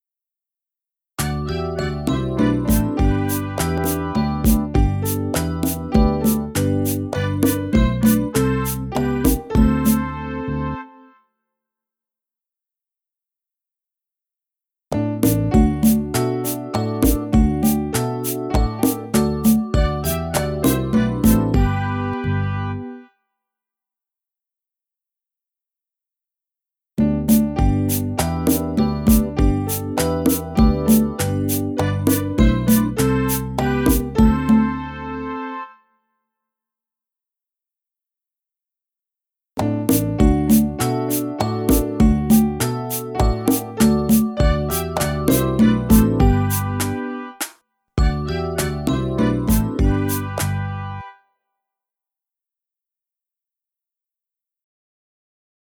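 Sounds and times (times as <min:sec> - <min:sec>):
instrumental music: 0:01.2 - 0:11.2, 0:15.2 - 0:23.1, 0:27.0 - 0:35.9, 0:39.9 - 0:51.2.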